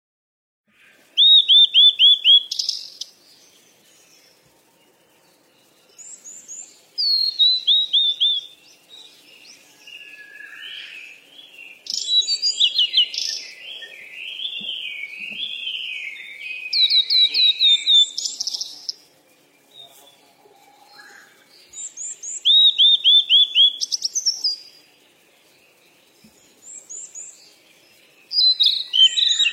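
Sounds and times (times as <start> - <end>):
bird chirping and whistling: 1.2 - 3.1, 6.0 - 8.6, 9.9 - 18.9, 21.7 - 24.7, 28.3 - 29.5.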